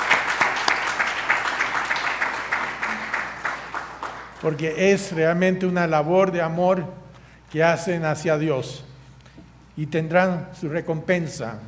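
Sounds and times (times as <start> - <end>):
audience applause: 0.0 - 4.4
speech: 4.4 - 8.9, 9.8 - 11.6.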